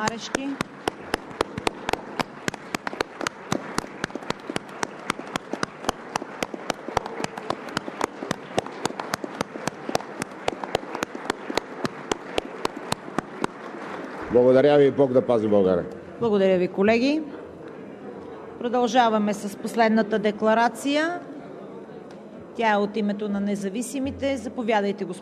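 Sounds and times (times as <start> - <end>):
speech: 0.0 - 0.8, 14.4 - 17.4, 18.6 - 21.3, 22.6 - 25.2
standing applause in parliament: 0.0 - 14.5.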